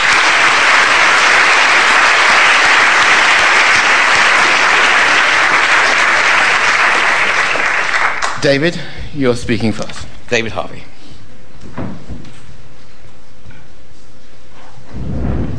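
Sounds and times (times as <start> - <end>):
audience applause at an LSE public event: 0.0 - 8.6
speech: 8.4 - 10.9.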